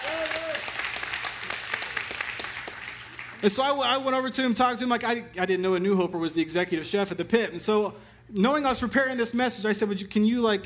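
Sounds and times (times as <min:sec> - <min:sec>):
audience applause: 0:00.0 - 0:03.4
speech: 0:03.4 - 0:10.6.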